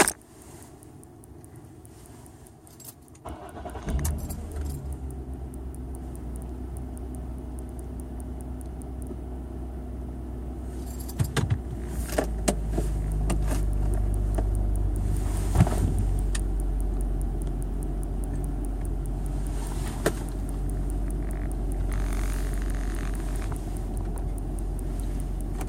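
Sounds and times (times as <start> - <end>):
x-type noise: 0.0 - 25.6.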